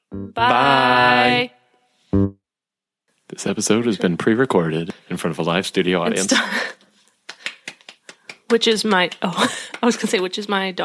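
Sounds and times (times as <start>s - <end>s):
speech: 0.4s - 1.6s, 3.4s - 6.8s, 8.5s - 10.8s
hand clapping: 7.2s - 10.2s.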